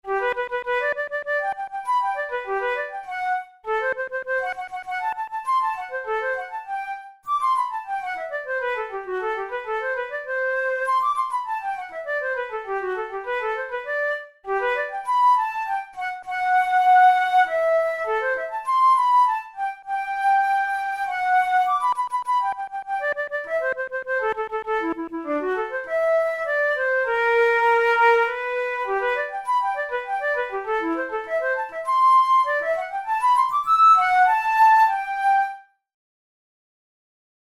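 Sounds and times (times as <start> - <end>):
studies for the Boehm flute: 0.0 - 35.9.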